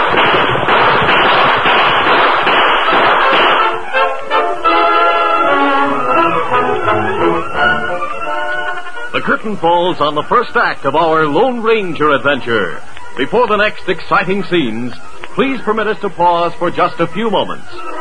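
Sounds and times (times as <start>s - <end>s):
gunfire volley in a Western radio drama: 0.0s - 4.1s
sustained musical passage: 2.9s - 10.9s, 17.0s - 18.0s
speech: 9.3s - 18.0s.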